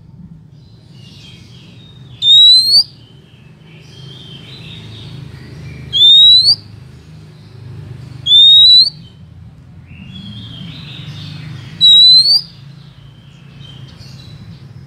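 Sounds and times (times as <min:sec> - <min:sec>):
bird chirping and twittering: 0:00.4 - 0:14.8.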